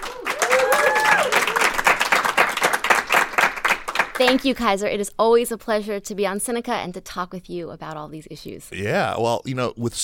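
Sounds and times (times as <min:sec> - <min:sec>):
audience applause welcoming a guest: 0:00.0 - 0:04.3
speech: 0:04.2 - 0:10.0.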